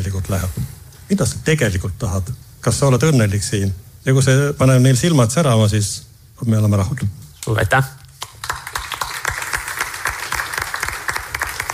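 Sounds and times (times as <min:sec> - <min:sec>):
speech: 0:00.0 - 0:08.0
applause: 0:08.2 - 0:11.7.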